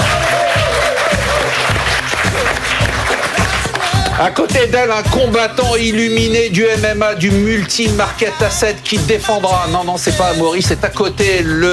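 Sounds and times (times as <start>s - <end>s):
audience clapping: 0.0s - 4.6s
speech: 4.2s - 11.7s.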